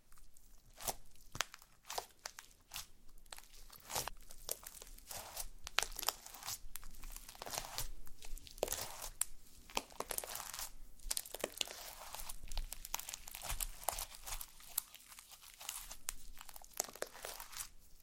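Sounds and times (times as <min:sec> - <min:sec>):
slime being squeezed and played with, wet crackling: 0:00.8 - 0:17.7.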